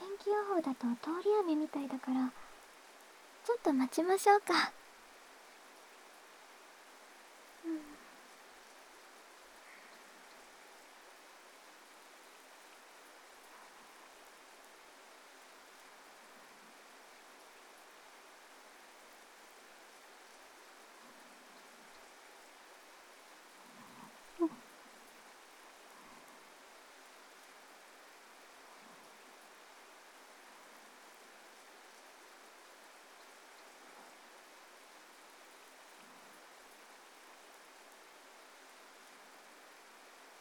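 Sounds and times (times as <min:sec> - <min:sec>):
person speaking in a roleplay voice: 0:00.0 - 0:02.4, 0:03.5 - 0:04.7
rain: 0:00.0 - 0:40.4.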